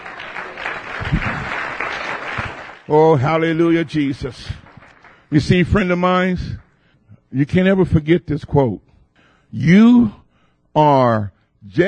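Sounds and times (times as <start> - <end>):
church congregation clapping hands: 0.0 - 6.9
speech: 2.9 - 4.6, 5.3 - 6.6, 7.3 - 8.8, 9.5 - 10.2, 10.8 - 11.8.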